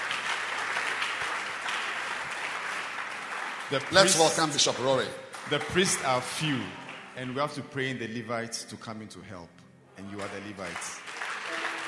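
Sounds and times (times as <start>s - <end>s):
audience applause: 0.0s - 7.4s, 10.1s - 11.8s
speech: 3.7s - 11.1s.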